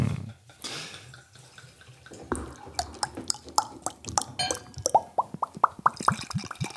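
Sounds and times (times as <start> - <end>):
beer glugging out of a bottle into a glass: 1.3 - 6.7.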